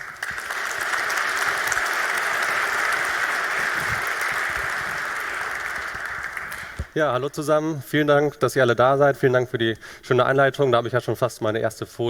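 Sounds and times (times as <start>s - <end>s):
warm audience applause: 0.0s - 7.0s
speech: 7.0s - 12.0s.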